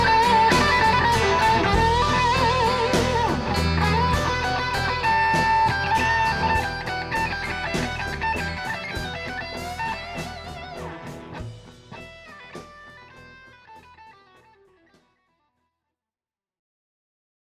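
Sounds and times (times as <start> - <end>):
Gibson Les Paul Burst electric guitar with PAF pickups: 0.0 - 15.2.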